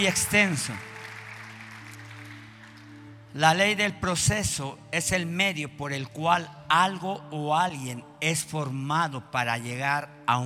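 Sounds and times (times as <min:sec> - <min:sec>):
speech: 0:00.0 - 0:00.9, 0:03.3 - 0:10.4
crowd applause: 0:00.0 - 0:03.0.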